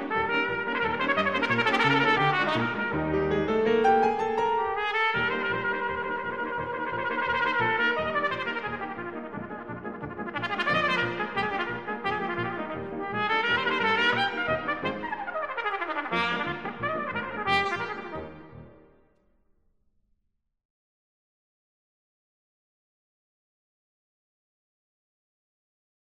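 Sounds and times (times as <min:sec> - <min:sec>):
solo trumpet playing staccato: 0:00.0 - 0:19.0.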